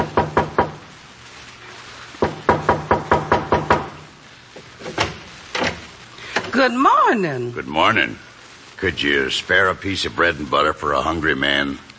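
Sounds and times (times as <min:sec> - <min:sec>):
knock at the back door: 0:00.0 - 0:00.8, 0:02.2 - 0:04.0
speech: 0:06.6 - 0:11.9.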